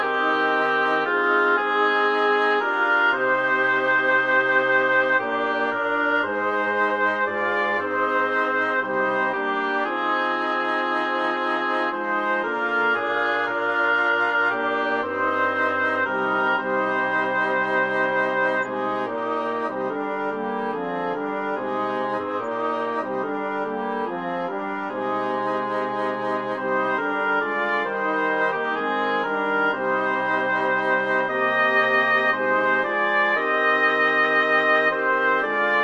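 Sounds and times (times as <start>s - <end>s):
computer-generated woodwind timbres playing a piece for mixed four-voice choir: 0.0s - 35.8s.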